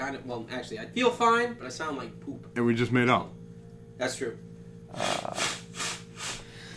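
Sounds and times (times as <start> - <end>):
speech: 0.1 - 3.4, 4.0 - 5.6
person blowing nose: 4.9 - 6.6.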